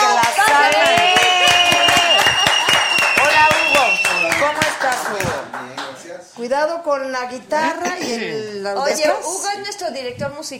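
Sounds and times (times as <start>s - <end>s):
audience applause: 0.0s - 6.0s
speech: 6.6s - 10.5s.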